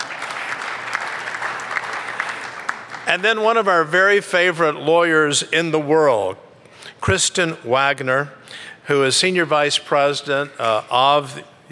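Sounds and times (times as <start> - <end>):
crowd clapping: 0.0 - 3.9
speech: 3.1 - 6.4, 7.0 - 11.5.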